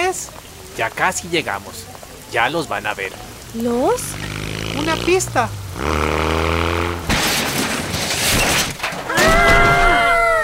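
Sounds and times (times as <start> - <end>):
speech: 0.8 - 6.2
car crash after swerving to avoid a pothole: 6.6 - 10.1.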